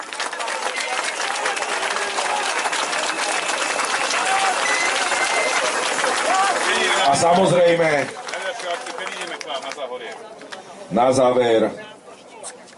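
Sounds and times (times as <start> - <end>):
crowd shouts and cheers: 0.0 - 7.8
large audience applause: 0.0 - 10.2
speech: 7.1 - 11.9.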